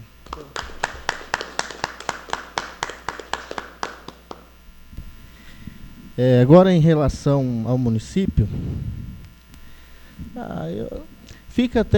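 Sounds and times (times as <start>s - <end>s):
council members applauding: 0.0s - 4.6s
low hum: 0.0s - 11.9s
speech: 6.2s - 9.0s, 10.4s - 11.9s.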